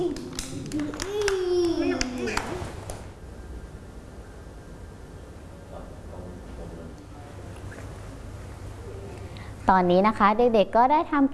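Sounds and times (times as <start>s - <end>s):
children clapping hands: 0.0s - 3.0s
speech: 9.7s - 11.3s.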